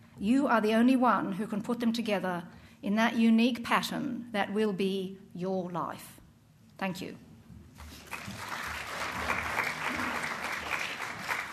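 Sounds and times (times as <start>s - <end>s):
speech: 0.2s - 6.2s, 6.8s - 7.3s
audience clapping: 7.8s - 11.5s.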